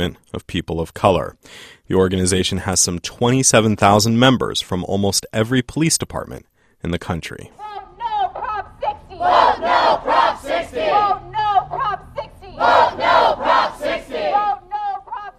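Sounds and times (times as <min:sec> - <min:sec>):
speech: 0:00.0 - 0:07.8
adult film performers chanting in protest in Los Angeles: 0:07.6 - 0:15.3.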